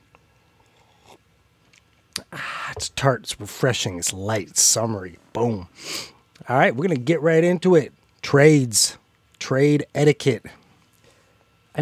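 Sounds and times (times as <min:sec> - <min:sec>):
person sipping a raspberry beer: 0:00.4 - 0:03.0
speech: 0:02.8 - 0:10.6.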